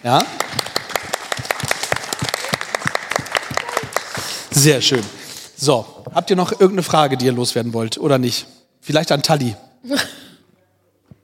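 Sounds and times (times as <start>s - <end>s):
speech: 0.0s - 0.7s, 4.6s - 10.1s
audience applause: 0.0s - 5.4s.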